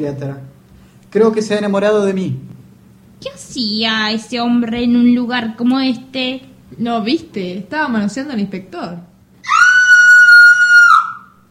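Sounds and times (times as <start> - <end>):
speech: 0.0 - 2.5, 3.2 - 9.1
person screaming: 9.4 - 11.3.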